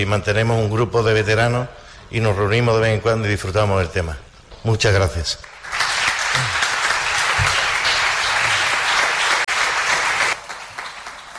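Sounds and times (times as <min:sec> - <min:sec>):
speech: 0:00.0 - 0:05.5
audience applause: 0:05.4 - 0:11.3.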